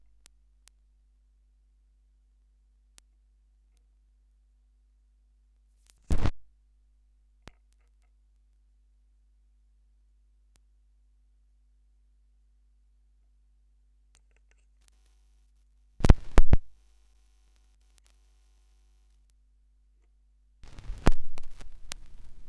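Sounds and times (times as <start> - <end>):
vinyl record noise: 5.9 - 6.4, 16.0 - 16.7, 20.6 - 22.4.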